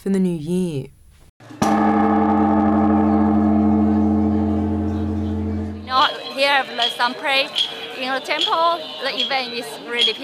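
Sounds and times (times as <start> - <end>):
speech: 0.0 - 1.0, 6.5 - 10.2
Buddhist temple bell tolling: 1.6 - 7.2.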